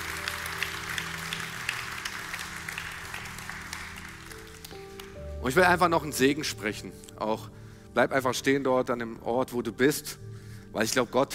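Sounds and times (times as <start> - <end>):
audience applause: 0.0 - 5.2
speech: 5.4 - 11.3.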